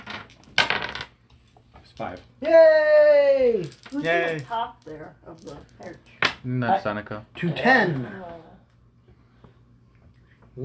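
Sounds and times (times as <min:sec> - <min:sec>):
dice clattering across a table: 0:00.0 - 0:01.2, 0:03.6 - 0:06.4
speech: 0:02.0 - 0:08.5.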